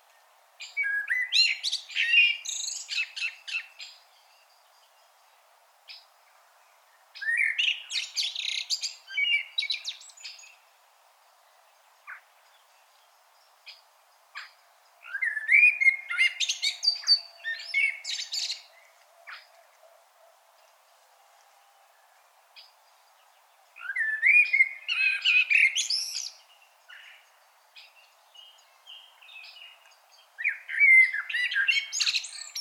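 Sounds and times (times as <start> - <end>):
common blackbird singing: 0.6 - 5.0, 7.2 - 10.6, 14.4 - 19.8, 22.6 - 32.6.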